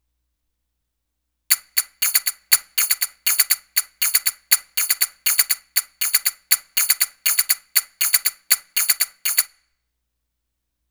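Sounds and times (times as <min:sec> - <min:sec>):
Arabic rhythm percussion: 0:01.5 - 0:09.5.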